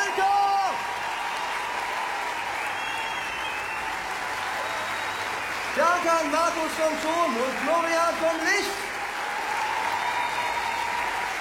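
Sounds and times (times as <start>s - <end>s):
audience applause at a concert: 0.0s - 11.4s
speech: 5.8s - 8.9s.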